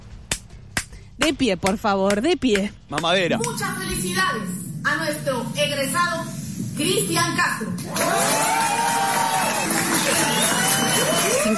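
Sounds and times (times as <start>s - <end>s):
speech: 1.2s - 9.0s, 11.0s - 11.5s
audience applauding: 7.8s - 11.5s.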